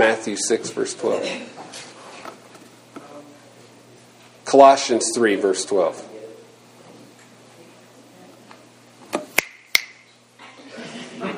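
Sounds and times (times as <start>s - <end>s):
speech: 0.0s - 1.9s, 4.5s - 6.1s
finger snaps: 9.3s - 10.0s
laughter: 10.4s - 11.3s.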